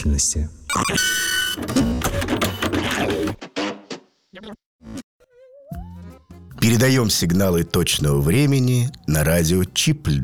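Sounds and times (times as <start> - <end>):
speech: 0.0 - 3.4, 4.4 - 5.0, 6.6 - 10.2
printer printing: 1.2 - 3.7.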